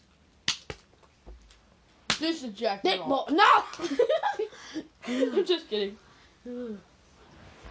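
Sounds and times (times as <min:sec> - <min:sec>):
slapping a thigh: 0:00.4 - 0:02.3
speech: 0:02.2 - 0:06.9.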